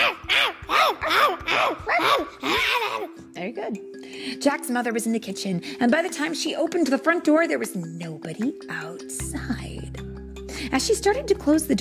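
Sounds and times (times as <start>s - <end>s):
person imitating a dog barking: 0.0s - 3.2s
speech: 3.7s - 10.0s, 10.7s - 11.7s.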